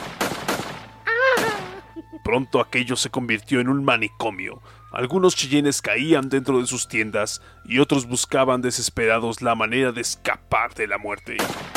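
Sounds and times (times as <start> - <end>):
gunfire sound effect of soldiers shooting at tipis: 0.0 - 1.6, 11.4 - 11.7
person crying out: 1.1 - 2.2
speech: 2.1 - 11.7.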